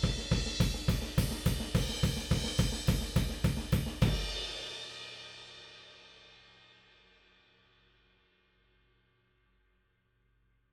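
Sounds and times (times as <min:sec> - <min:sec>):
drum: 0:00.0 - 0:04.9.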